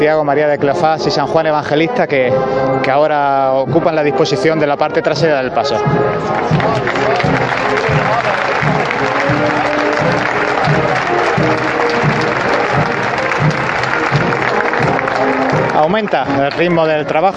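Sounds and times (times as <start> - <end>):
speech: 0.0 - 11.8, 15.8 - 17.3
crowd applauding a Holy Week procession float on Holy Monday 2017 in Jaén: 6.0 - 17.3.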